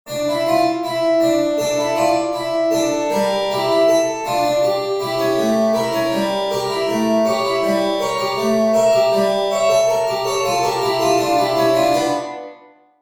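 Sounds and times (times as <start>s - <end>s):
harpsichord: 0.1s - 12.8s.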